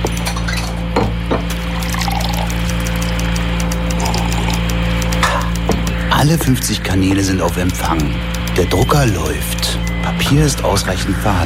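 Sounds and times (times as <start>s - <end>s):
constant low electrical hum: 0.0s - 11.4s
coffee poured into a cup: 1.5s - 4.6s
speech: 6.2s - 11.4s.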